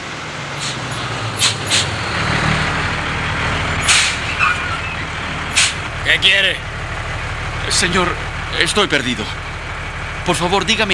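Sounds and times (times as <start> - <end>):
large truck engine idling: 0.0 - 10.9
air brakes hissing: 0.6 - 2.0, 3.8 - 5.9
speech: 6.1 - 6.7, 7.7 - 9.4, 10.3 - 10.9.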